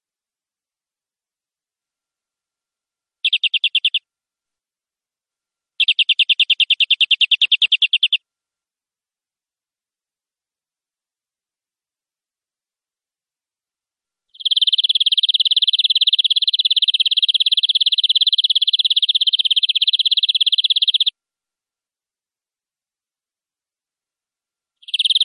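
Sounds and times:
canary singing: 0:03.2 - 0:04.0, 0:05.8 - 0:08.2, 0:14.3 - 0:21.2, 0:24.8 - 0:25.2.

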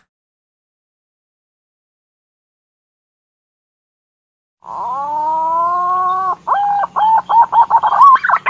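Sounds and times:
green pigeon whistling: 0:04.8 - 0:08.4.

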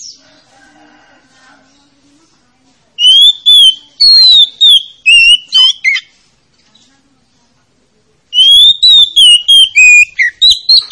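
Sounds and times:
Oriental magpie-robin song of bright whistled phrases: 0:00.0 - 0:00.2, 0:03.0 - 0:06.1, 0:08.3 - 0:10.8.

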